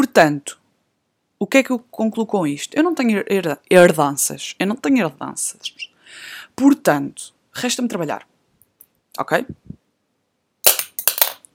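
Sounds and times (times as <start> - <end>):
speech: 0.0 - 0.6, 1.4 - 8.3, 9.2 - 9.8
pen thrown onto the floor: 10.7 - 11.4.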